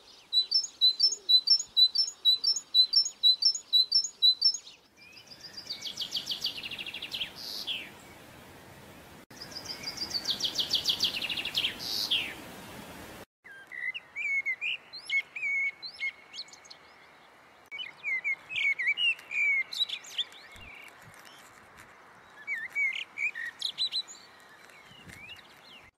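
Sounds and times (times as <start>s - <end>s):
bird song of high rapid chirps: 0.0s - 8.3s, 9.3s - 12.4s, 13.5s - 25.9s
steady hiss: 6.1s - 13.2s.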